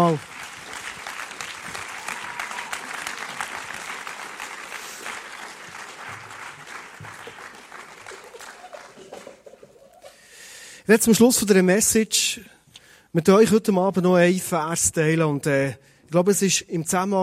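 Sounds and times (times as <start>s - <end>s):
crowd applause: 0.0s - 10.2s
speech: 0.1s - 0.3s, 10.9s - 12.5s, 13.1s - 17.2s.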